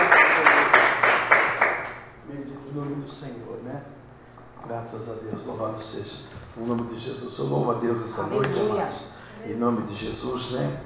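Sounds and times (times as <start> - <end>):
rhythmic clapping during a church service: 0.0 - 2.1
speech: 4.8 - 10.8.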